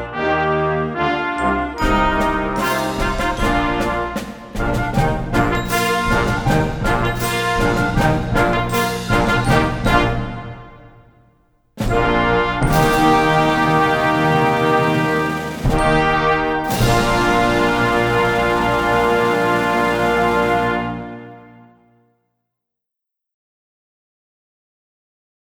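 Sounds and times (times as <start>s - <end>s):
choir singing: 0.1s - 10.8s, 12.0s - 21.0s.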